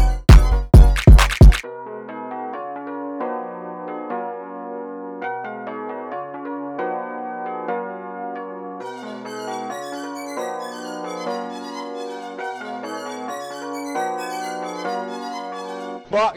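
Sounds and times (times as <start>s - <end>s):
instrumental music: 0.0s - 1.6s, 8.8s - 16.2s.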